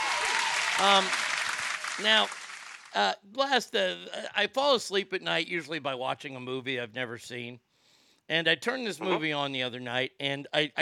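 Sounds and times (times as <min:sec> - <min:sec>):
audience applause: 0:00.0 - 0:02.9
speech: 0:00.8 - 0:01.2, 0:02.0 - 0:07.6, 0:08.3 - 0:10.8.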